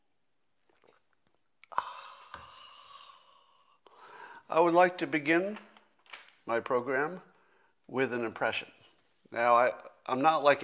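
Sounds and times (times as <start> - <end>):
sipping coffee: 0.5 - 3.9
speech: 4.5 - 5.7, 6.5 - 7.3, 7.9 - 10.6.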